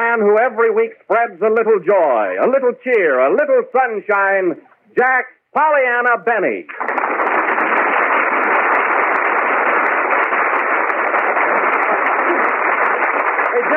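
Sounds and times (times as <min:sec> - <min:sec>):
speech: 0:00.2 - 0:07.3
studio audience applause: 0:06.7 - 0:13.7.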